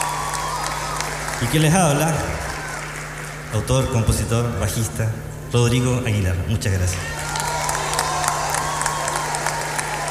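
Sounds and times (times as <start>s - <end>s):
audience applause: 0.0s - 4.0s, 6.9s - 10.1s
speech: 1.4s - 2.5s, 3.5s - 7.2s.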